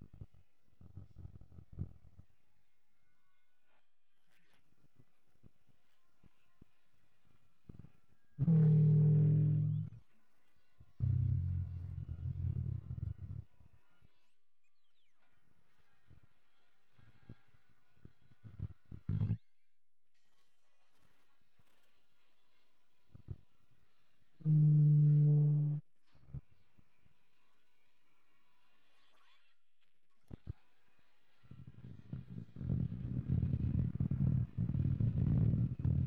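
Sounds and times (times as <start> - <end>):
bass: 8.4 - 10.0, 11.0 - 13.6, 24.4 - 25.8, 31.6 - 36.0.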